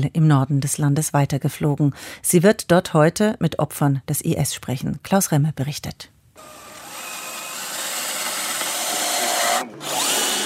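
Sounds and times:
speech: 0.0 - 6.6
power screwdriver driving a screw during Iraqi soldier training: 6.4 - 10.4.

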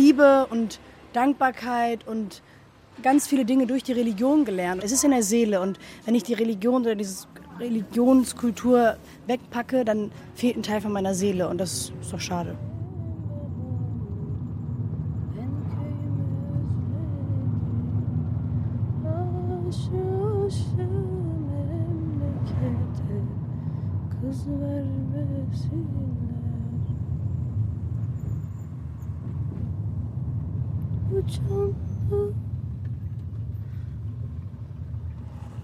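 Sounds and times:
car engine rumble while driving: 0.0 - 35.6
speech: 0.2 - 12.7.

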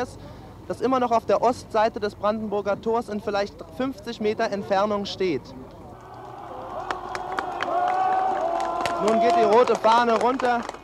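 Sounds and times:
speech: 0.0 - 5.8, 9.0 - 10.8
demonstrators clapping: 6.0 - 10.8.

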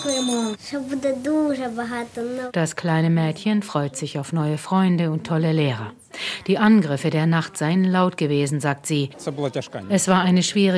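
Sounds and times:
school bells ringing: 0.0 - 0.7
speech: 0.0 - 10.7.

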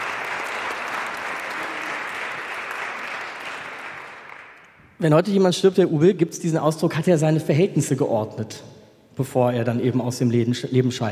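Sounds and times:
applause: 0.0 - 5.0
speech: 5.0 - 11.1.

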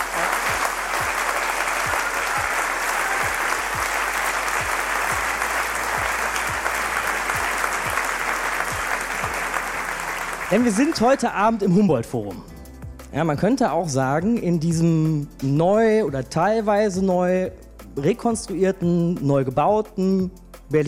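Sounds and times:
audience applause: 0.0 - 11.2
speech: 10.5 - 12.5, 13.1 - 20.8.

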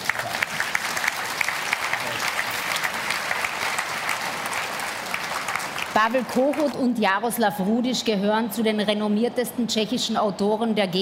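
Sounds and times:
audience applause: 0.0 - 6.8
speech: 6.0 - 11.0.

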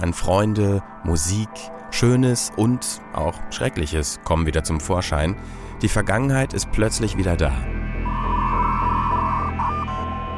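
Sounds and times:
speech: 0.0 - 7.8
old analog dial-up modem connecting: 8.1 - 10.3.

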